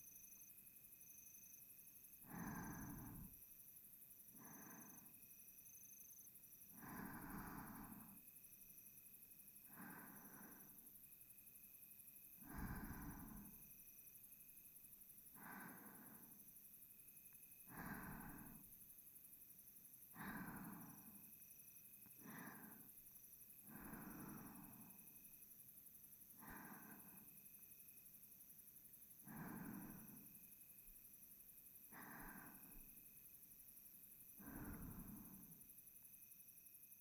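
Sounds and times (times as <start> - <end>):
reversed breathing of a sleeping person: 2.2 - 3.4, 4.4 - 5.1, 6.7 - 8.2, 9.7 - 10.9, 12.4 - 13.6, 15.4 - 16.4, 17.6 - 18.7, 20.1 - 21.3, 22.0 - 25.2, 26.3 - 27.3, 29.2 - 30.4, 31.9 - 32.9, 34.4 - 35.6.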